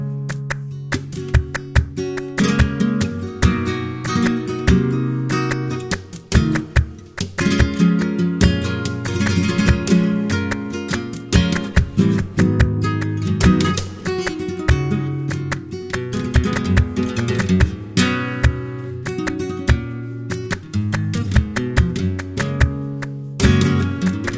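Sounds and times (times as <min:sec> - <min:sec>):
flamenco guitar playing alegria compas: 0:00.0 - 0:24.3.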